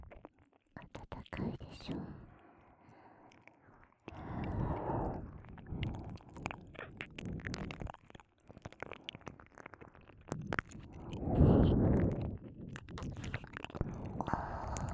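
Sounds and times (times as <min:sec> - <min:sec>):
ear licking: 0:04.1 - 0:14.9.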